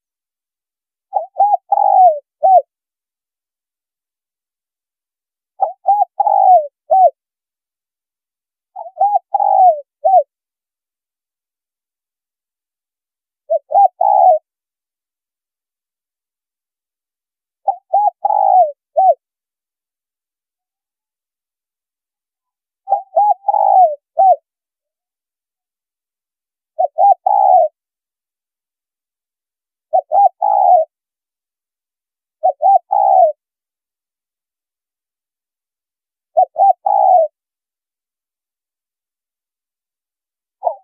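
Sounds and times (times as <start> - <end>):
spotted dove cooing: 1.1 - 2.7, 5.6 - 7.2, 8.8 - 10.3, 13.5 - 14.5, 17.6 - 19.2, 22.9 - 24.5, 26.8 - 27.8, 29.9 - 31.0, 32.4 - 33.4, 36.4 - 37.4, 40.6 - 40.8.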